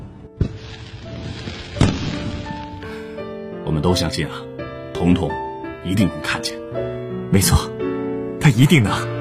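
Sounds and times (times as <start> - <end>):
magic-shot fireworks bursting at Spring Festival: 0.0 - 2.9
speech: 3.7 - 7.8, 8.4 - 9.1.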